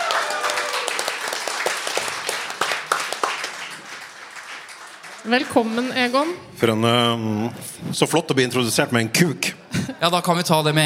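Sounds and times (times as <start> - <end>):
audience applauding to welcome a podcast guest: 0.0 - 6.4
speech: 5.2 - 10.8.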